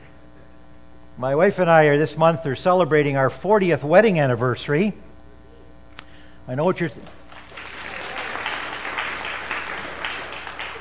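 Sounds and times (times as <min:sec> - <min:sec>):
speech: 0:01.2 - 0:05.1, 0:06.5 - 0:07.2
crowd applauding: 0:07.0 - 0:10.7.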